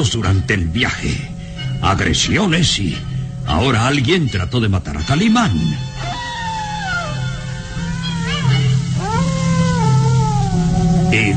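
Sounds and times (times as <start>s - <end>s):
speech: 0.0s - 6.2s
bloodcurdling howls: 5.9s - 11.3s.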